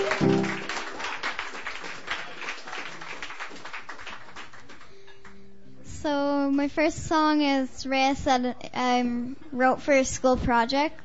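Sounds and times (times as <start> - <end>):
open mic audience applause welcoming a performer: 0.0 - 5.0
speech: 6.5 - 11.0.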